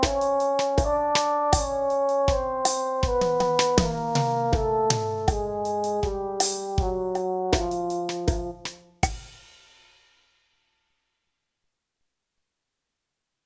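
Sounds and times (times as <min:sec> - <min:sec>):
brass playing chromatic notes in F: 0:00.0 - 0:08.7.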